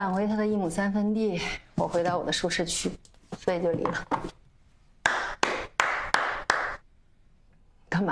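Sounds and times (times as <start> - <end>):
speech: 0.0 - 4.4
crisp hand claps: 5.0 - 6.8.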